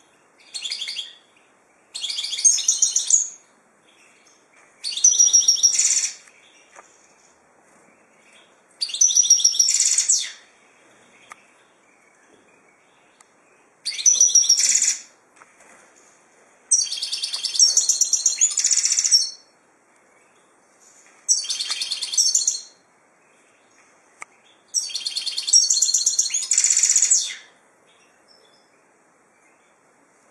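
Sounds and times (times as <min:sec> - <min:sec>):
finch song: 0:00.0 - 0:30.2
faint click: 0:23.8 - 0:24.4.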